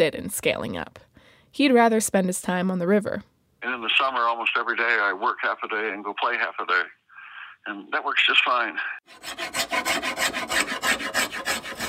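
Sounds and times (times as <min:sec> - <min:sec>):
speech: 0:00.0 - 0:07.0, 0:07.6 - 0:09.6
hand tool scraping and rasping across wood while carving a wooden paddle: 0:09.1 - 0:11.8.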